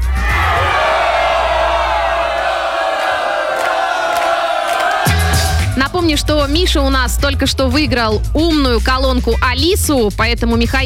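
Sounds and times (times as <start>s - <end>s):
crowd cheering: 0.0s - 5.9s
speech: 6.1s - 10.8s.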